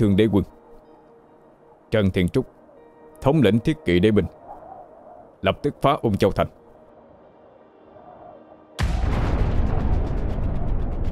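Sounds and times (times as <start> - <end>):
speech: 0.0 - 0.6, 1.9 - 2.6, 3.2 - 4.4, 5.4 - 6.6
loud explosion on Cai Kinh mountain: 8.8 - 11.1.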